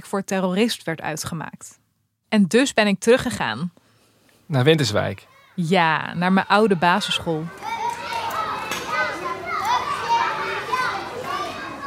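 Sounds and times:
speech: 0:00.0 - 0:03.8, 0:04.5 - 0:07.7
children playing in school playground: 0:05.2 - 0:05.6, 0:06.5 - 0:11.8.

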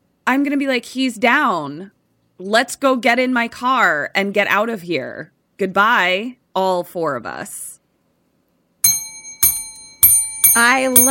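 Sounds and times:
speech: 0:00.3 - 0:07.7, 0:10.6 - 0:11.1
bell ding sound effect: 0:08.8 - 0:11.1.

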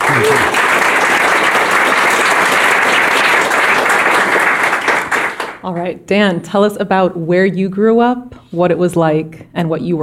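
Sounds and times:
audience applause: 0:00.0 - 0:05.6
speech: 0:00.2 - 0:00.6, 0:05.6 - 0:10.0.

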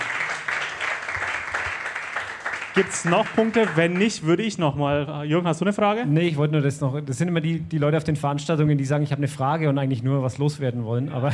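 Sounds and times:
audience applause: 0:00.0 - 0:04.3
speech: 0:02.8 - 0:11.3
laughter: 0:11.2 - 0:11.3.

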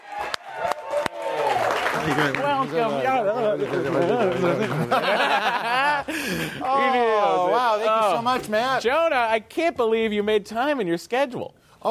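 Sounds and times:
people whooping: 0:00.0 - 0:01.9
audience applause at a comedy show: 0:00.0 - 0:05.5
laughter: 0:02.0 - 0:08.0
speech: 0:02.0 - 0:11.8.

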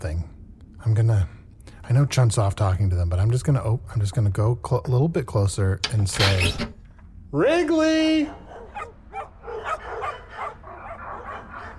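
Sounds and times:
speech: 0:00.8 - 0:08.4
several dogs barking: 0:08.1 - 0:11.7.

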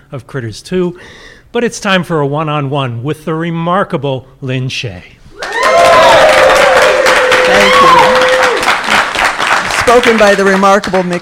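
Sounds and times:
speech: 0:00.1 - 0:05.2, 0:07.5 - 0:08.2, 0:09.9 - 0:11.2
audience cheering: 0:05.4 - 0:10.4
audience applause: 0:05.4 - 0:11.2.

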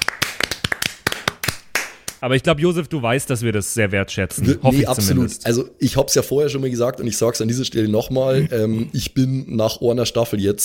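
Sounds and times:
applause, hand clapping: 0:00.0 - 0:02.2
speech: 0:02.2 - 0:10.6.

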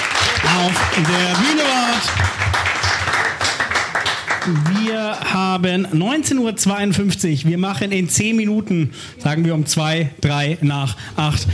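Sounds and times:
crowd cheering and whooping: 0:00.0 - 0:04.9
audience applause: 0:00.0 - 0:05.2
speech: 0:00.6 - 0:02.8, 0:04.4 - 0:11.5.

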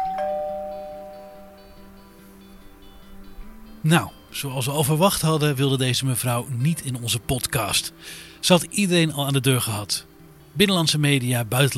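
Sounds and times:
electronic doorbell chime: 0:00.0 - 0:01.9
speech: 0:03.8 - 0:11.7.

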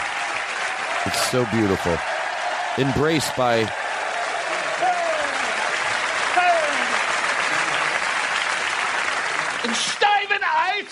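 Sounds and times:
big round of applause: 0:00.0 - 0:10.8
speech: 0:01.0 - 0:02.2, 0:02.8 - 0:03.8, 0:09.6 - 0:10.1.

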